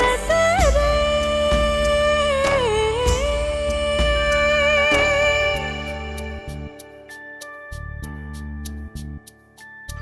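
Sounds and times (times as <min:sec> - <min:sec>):
woman singing: 0:00.0 - 0:06.7.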